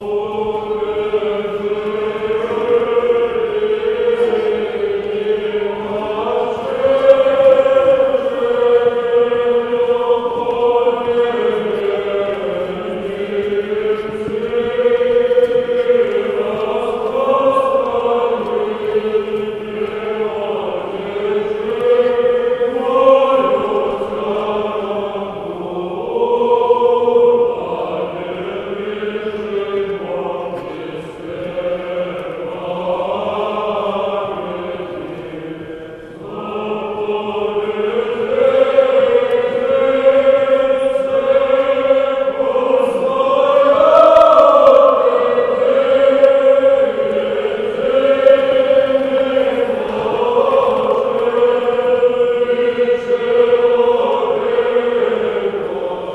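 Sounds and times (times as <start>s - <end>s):
choir chanting: 0.0s - 56.1s.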